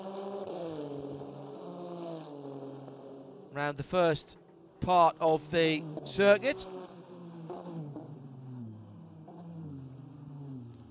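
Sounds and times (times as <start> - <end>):
black number 10 race car engine on Michelin tyres on the Belle Isle street circuit: 0.0 - 10.8
speech: 3.6 - 6.8.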